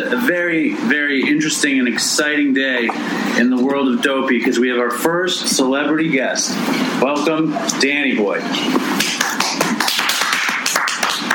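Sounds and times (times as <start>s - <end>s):
speech: 0.1s - 9.2s
applause: 9.0s - 11.3s.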